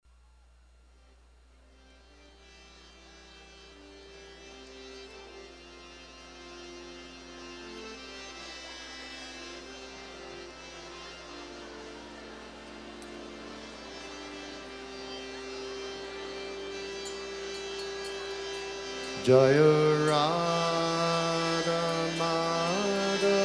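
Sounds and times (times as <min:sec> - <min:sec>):
kirtan devotional chanting: 0:07.5 - 0:23.4.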